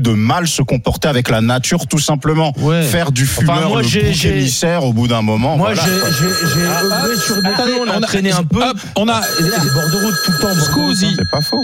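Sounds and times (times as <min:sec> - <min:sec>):
speech: 0:00.0 - 0:11.6
telephone ringing for incoming call: 0:05.6 - 0:08.3, 0:09.1 - 0:11.6.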